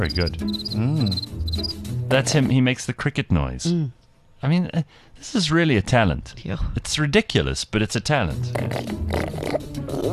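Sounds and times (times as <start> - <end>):
speech: 0.0 - 10.1
person imitating a warthog with grunting snort: 0.8 - 1.2, 8.5 - 10.1.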